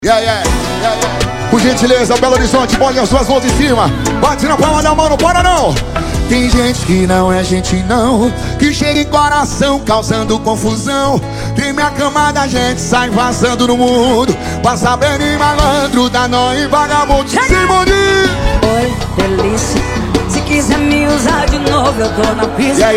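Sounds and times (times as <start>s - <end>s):
sertanejo music: 0.0s - 22.9s.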